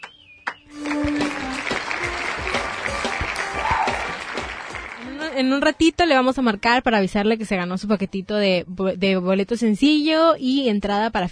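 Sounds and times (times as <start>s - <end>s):
applause: 0.5s - 5.4s
speech: 5.4s - 11.2s.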